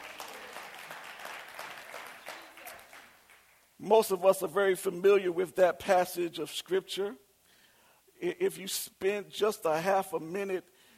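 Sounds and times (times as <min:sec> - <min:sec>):
audience clapping: 0:00.0 - 0:03.7
speech: 0:03.8 - 0:07.2, 0:08.2 - 0:10.7.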